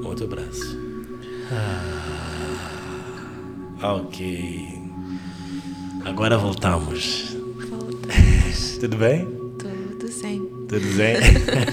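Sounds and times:
speech: 0.0s - 0.9s, 1.5s - 3.1s, 3.8s - 5.3s, 6.0s - 7.4s, 8.5s - 9.4s, 10.3s - 11.7s
constant low tone: 0.0s - 11.7s
deep inhale during guided breathing meditation: 1.2s - 3.6s, 5.0s - 6.0s
laughter: 10.8s - 11.7s.

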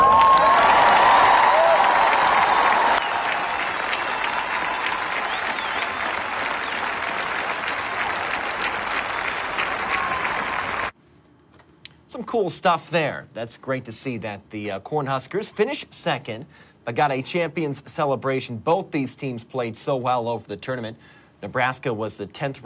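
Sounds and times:
Nebraska crowd cheering and applauding: 0.0s - 10.9s
speech: 12.3s - 22.6s.

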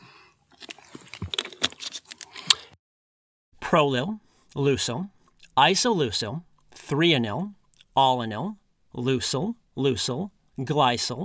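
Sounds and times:
person drinking a sip of water: 0.0s - 2.8s
speech: 3.7s - 11.2s.

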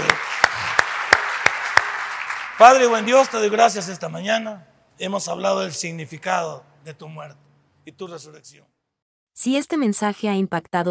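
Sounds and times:
audience applause: 0.0s - 4.0s
sharp rhythmic claps: 0.0s - 4.1s
speech: 2.6s - 8.8s, 9.4s - 10.9s.

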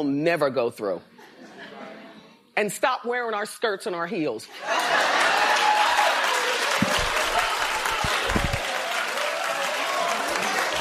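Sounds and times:
speech: 0.0s - 1.3s, 2.6s - 5.4s
light audience clapping: 4.8s - 10.7s.

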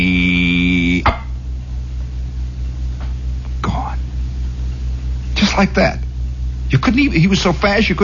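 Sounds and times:
voice imitating a buzzing fly: 0.0s - 1.2s
low hum: 0.0s - 8.0s
speech: 5.6s - 6.0s, 6.7s - 8.0s.

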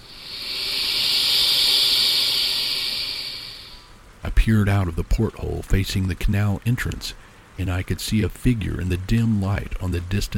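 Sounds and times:
loud hiss: 0.0s - 4.5s
speech: 4.3s - 10.3s.

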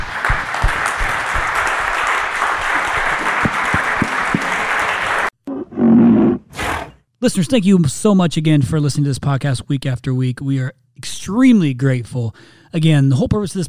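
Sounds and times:
audience applause: 0.0s - 5.4s
speech: 7.2s - 13.6s.

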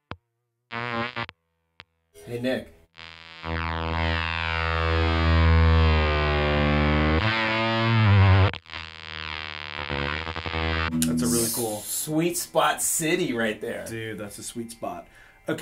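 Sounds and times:
speech: 2.3s - 2.8s, 12.1s - 15.6s
guitar fuzz pedal with feedback loop: 2.9s - 12.1s.

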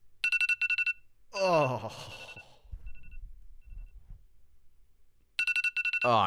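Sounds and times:
phone alarm ringing: 0.2s - 1.1s, 1.8s - 4.0s, 5.4s - 6.2s.

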